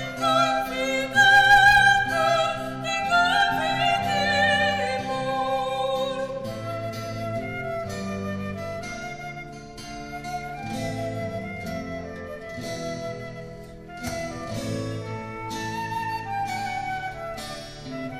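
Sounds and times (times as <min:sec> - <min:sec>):
flute playing a hymn: 0:00.0 - 0:18.1.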